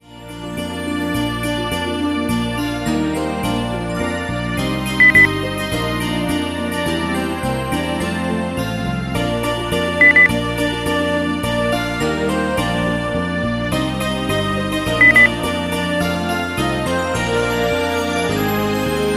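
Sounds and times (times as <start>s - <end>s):
Christmas song: 0.1s - 19.1s.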